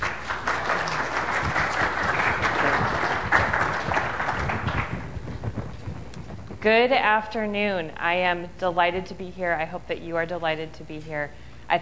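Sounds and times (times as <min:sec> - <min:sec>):
audience applause welcoming a speaker to a lecture: 0:00.0 - 0:06.1
speech: 0:06.6 - 0:11.8.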